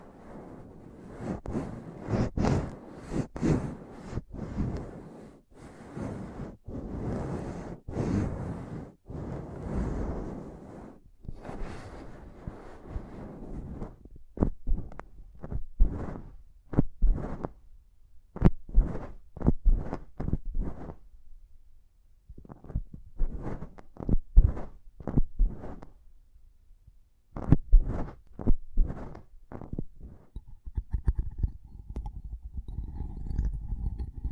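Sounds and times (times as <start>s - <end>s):
faint low rumble: 0.0s - 34.3s
intense mic tapping and scratching: 18.4s - 21.0s, 22.4s - 25.9s, 27.4s - 34.3s.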